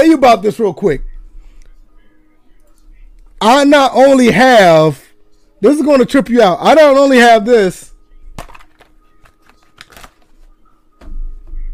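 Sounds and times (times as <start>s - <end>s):
speech: 0.0s - 1.1s, 3.4s - 5.0s, 5.6s - 7.9s
stack of football playbook and roster cards being flicked through: 8.4s - 10.5s.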